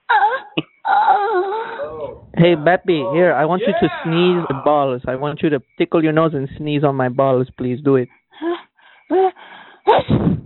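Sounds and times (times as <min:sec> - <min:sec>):
person moaning: 0:00.1 - 0:04.9
speech: 0:02.4 - 0:10.4.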